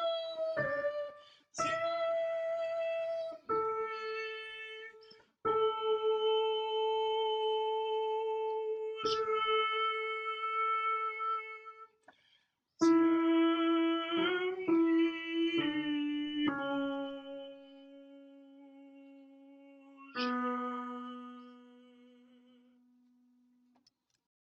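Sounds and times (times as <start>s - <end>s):
soprano singing: 0.0s - 11.8s, 12.8s - 22.8s.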